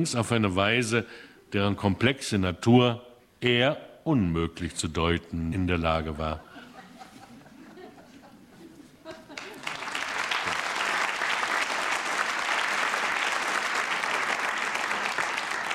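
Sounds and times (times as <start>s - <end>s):
speech: 0.0s - 6.5s
laughter: 6.4s - 10.1s
theater audience applause at the Münchner Volkstheater: 9.3s - 15.7s.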